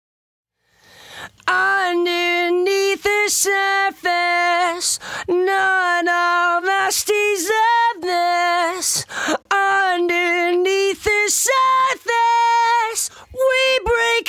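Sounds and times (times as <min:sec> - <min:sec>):
lead vocal: 0:00.8 - 0:14.2.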